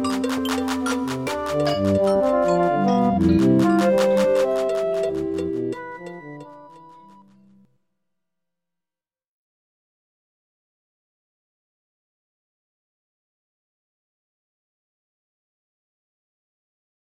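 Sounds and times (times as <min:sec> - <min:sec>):
African style complex polyrhythm: 0:00.0 - 0:07.4.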